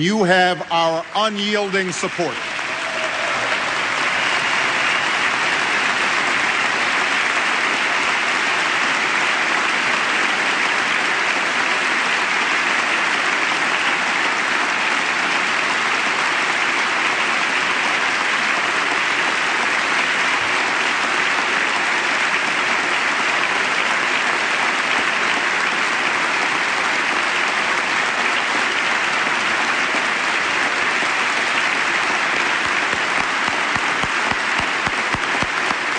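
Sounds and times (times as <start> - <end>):
speech: 0.0 - 2.5
sustained applause: 0.0 - 35.9.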